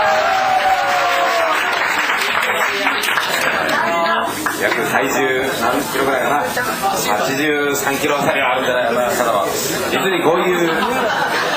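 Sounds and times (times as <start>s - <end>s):
concert audience applauding a performer at a show: 0.0s - 5.3s
speech: 4.9s - 11.5s
laughter: 10.4s - 11.5s.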